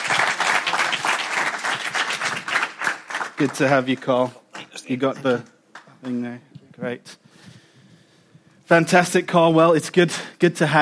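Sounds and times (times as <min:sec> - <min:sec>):
audience round of applause: 0:00.0 - 0:04.3
speech: 0:03.4 - 0:07.2, 0:08.7 - 0:10.7.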